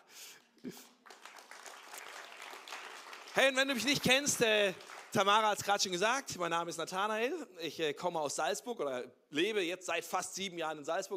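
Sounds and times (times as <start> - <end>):
speech: 0.6 - 0.9, 3.4 - 11.1
audience applause: 1.0 - 5.4.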